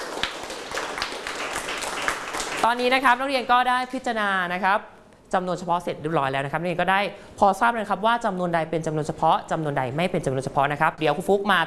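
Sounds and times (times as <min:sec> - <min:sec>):
students clapping for a classmate in a math classroom: 0:00.0 - 0:02.7
speech: 0:02.6 - 0:11.6.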